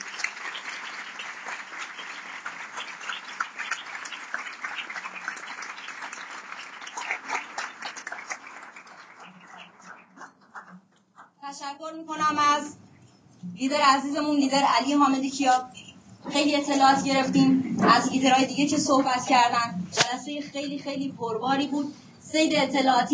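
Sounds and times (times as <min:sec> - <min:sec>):
group applause: 0:00.0 - 0:11.4
speech: 0:11.5 - 0:12.8, 0:13.6 - 0:23.1.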